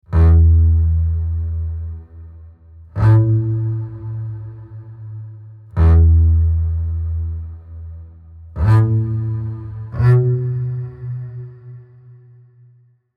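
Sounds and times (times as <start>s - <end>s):
music: 0.0s - 13.1s.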